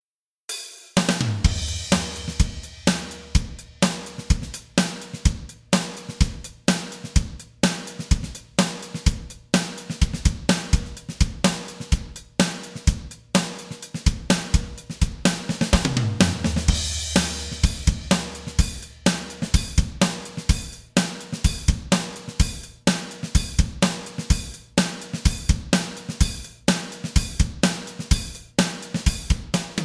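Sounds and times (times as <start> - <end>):
drums: 0.5 - 29.8.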